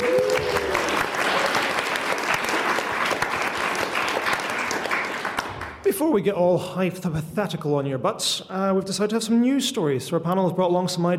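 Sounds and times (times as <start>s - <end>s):
audience applause at the Glasgow Science Festival: 0.0s - 5.8s
speech: 6.0s - 11.1s.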